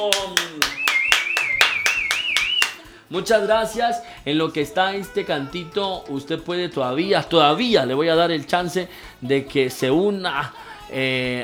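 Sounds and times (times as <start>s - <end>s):
speech: 0.0s - 0.4s, 3.1s - 11.4s
audience applause: 0.0s - 2.9s.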